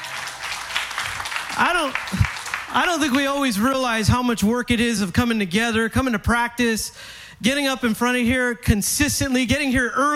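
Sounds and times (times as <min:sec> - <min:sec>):
audience applause: 0:00.0 - 0:03.5
speech: 0:01.6 - 0:10.1.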